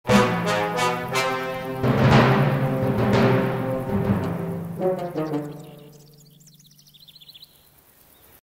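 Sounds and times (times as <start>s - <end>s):
spawn jingle: 0.1s - 7.3s.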